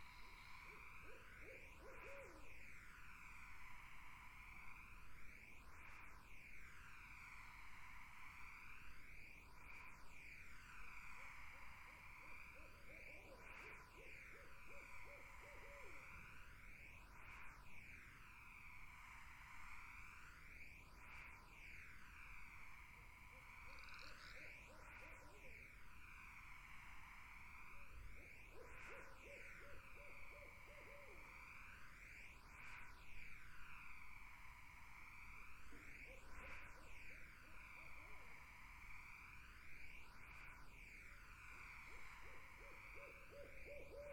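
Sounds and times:
barred owl hooting: 0:00.0 - 0:02.6, 0:12.5 - 0:16.3, 0:23.2 - 0:25.6, 0:28.3 - 0:31.6, 0:41.7 - 0:44.1
insect chorus: 0:00.0 - 0:44.1.

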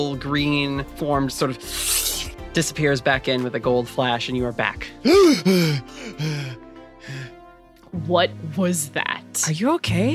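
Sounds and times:
speech: 0:00.0 - 0:07.3, 0:07.9 - 0:10.1
person sneezing: 0:05.1 - 0:05.8.

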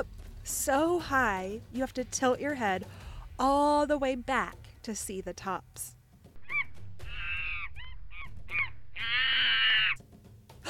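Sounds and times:
speech: 0:00.0 - 0:06.0
monkey calling: 0:06.4 - 0:10.0.

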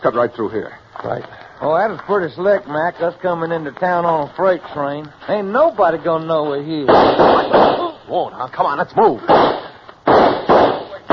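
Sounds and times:
speech: 0:00.0 - 0:09.6
gunshots: 0:06.8 - 0:08.1, 0:09.2 - 0:11.1.

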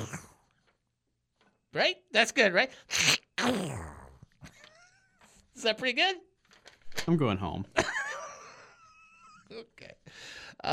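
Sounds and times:
voice imitating a cartoon duck's sneeze: 0:00.0 - 0:00.4, 0:02.8 - 0:04.2
speech: 0:01.8 - 0:03.9, 0:05.6 - 0:06.3, 0:07.1 - 0:07.9, 0:09.5 - 0:10.7
soft breathing: 0:10.0 - 0:10.6.

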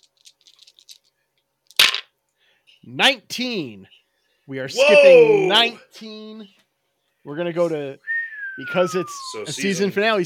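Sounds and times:
dice being rolled: 0:00.0 - 0:02.1
speech: 0:02.8 - 0:06.6, 0:07.2 - 0:10.2.

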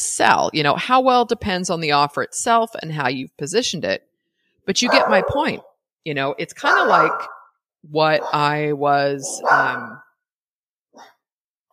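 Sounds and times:
speech: 0:00.2 - 0:04.1, 0:04.7 - 0:09.9
dog barking: 0:04.8 - 0:05.7, 0:06.6 - 0:07.5, 0:08.2 - 0:08.5, 0:09.2 - 0:10.0.

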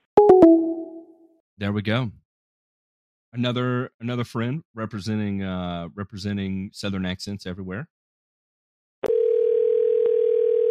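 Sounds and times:
speech: 0:01.6 - 0:02.2, 0:03.3 - 0:08.0
telephone dial tone of outbound call: 0:09.0 - 0:10.7.

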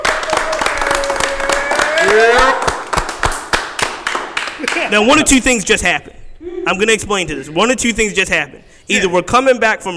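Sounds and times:
audience clapping: 0:00.0 - 0:05.0
speech: 0:04.9 - 0:06.1, 0:06.7 - 0:09.9.

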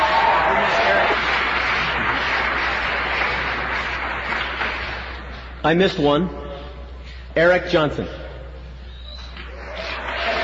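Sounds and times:
audience applause: 0:00.0 - 0:05.4, 0:09.5 - 0:10.4
speech: 0:05.6 - 0:06.4, 0:07.4 - 0:08.2.

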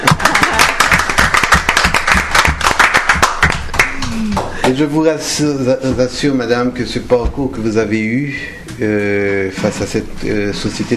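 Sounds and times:
crowd applauding: 0:00.0 - 0:04.8
speech: 0:04.8 - 0:10.9.

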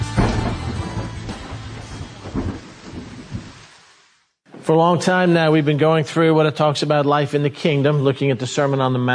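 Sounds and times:
low rumbling thunder: 0:00.2 - 0:03.7
steady rain pouring: 0:00.6 - 0:04.3
speech: 0:04.7 - 0:09.1.

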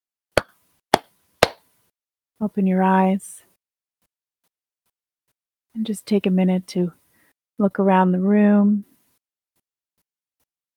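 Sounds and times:
hands clapping: 0:00.4 - 0:01.6
speech: 0:02.4 - 0:03.4, 0:05.8 - 0:07.0, 0:07.6 - 0:08.9.

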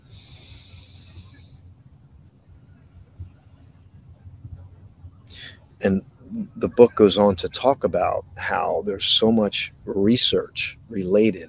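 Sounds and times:
breathing through the nose during a guided presence exercise: 0:00.0 - 0:01.6
low rumble: 0:00.0 - 0:11.4
speech: 0:05.4 - 0:11.4.

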